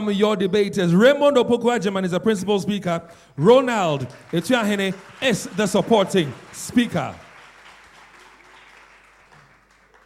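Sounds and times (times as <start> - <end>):
speech: 0.0 - 7.2
audience applause welcoming debaters at a debate in Ghana: 3.8 - 10.0.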